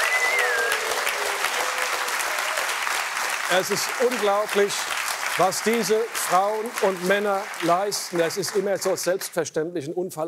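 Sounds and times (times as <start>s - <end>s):
whistle: 0.0s - 1.0s
audience applause: 0.0s - 9.2s
speech: 3.5s - 10.2s.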